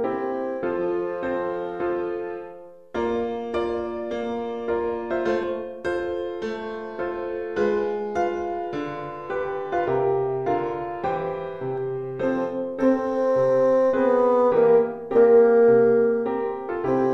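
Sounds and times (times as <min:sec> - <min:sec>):
bassoon: 0:00.0 - 0:04.0, 0:12.1 - 0:17.1
piano: 0:00.0 - 0:17.1.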